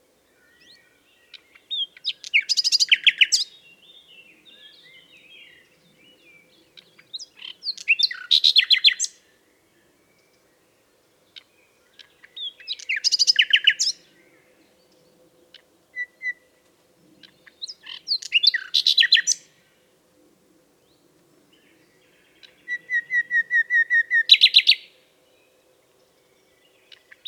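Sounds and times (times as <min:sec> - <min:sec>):
common nightingale singing: 0:00.2 - 0:16.5, 0:17.2 - 0:19.5, 0:20.8 - 0:27.2.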